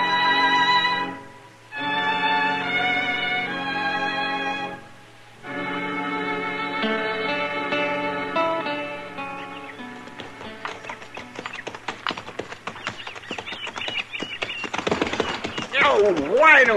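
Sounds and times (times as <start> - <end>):
sustained musical chord: 0.0 - 10.0
horse hooves clip-clopping: 9.4 - 16.7.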